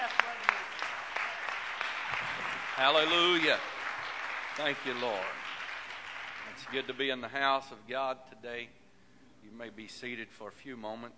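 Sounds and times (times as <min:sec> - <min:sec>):
audience hand clapping: 0:00.0 - 0:07.4
speech: 0:02.8 - 0:03.8, 0:04.6 - 0:05.4, 0:06.6 - 0:08.8, 0:09.4 - 0:11.1.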